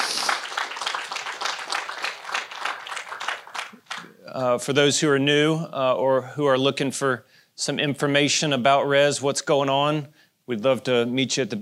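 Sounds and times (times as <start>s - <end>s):
audience round of applause: 0.0s - 4.2s
speech: 4.4s - 11.5s.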